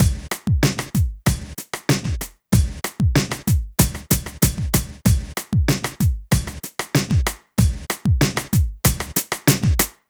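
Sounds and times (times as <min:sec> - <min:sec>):
club R&B drums: 0:00.0 - 0:10.0.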